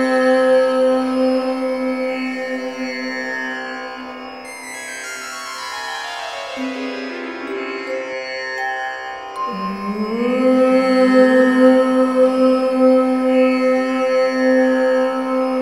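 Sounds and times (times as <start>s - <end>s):
woman chanting om: 0.0s - 4.2s, 9.5s - 15.5s.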